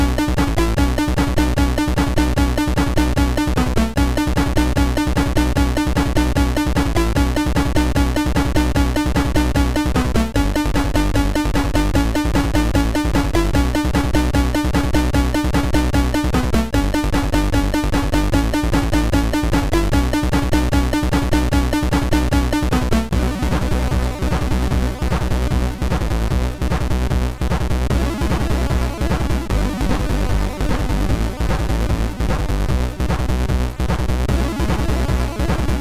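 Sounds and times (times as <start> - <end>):
SID MOS6581 chip synth loop: 0.0 - 35.7.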